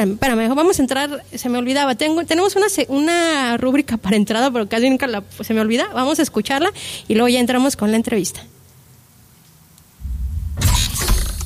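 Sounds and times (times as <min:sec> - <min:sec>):
speech: 0:00.0 - 0:08.5
door opening: 0:10.0 - 0:11.4.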